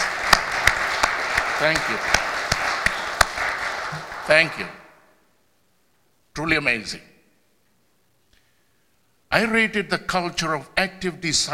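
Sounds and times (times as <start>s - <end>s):
crowd clapping: 0.0s - 5.0s
speech: 1.6s - 2.2s, 4.3s - 4.8s, 6.4s - 7.1s, 9.3s - 11.5s.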